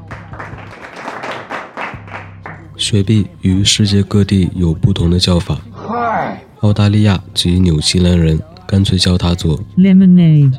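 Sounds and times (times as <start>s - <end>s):
crowd applause: 0.0s - 2.6s
speech: 2.8s - 5.7s, 6.6s - 10.5s.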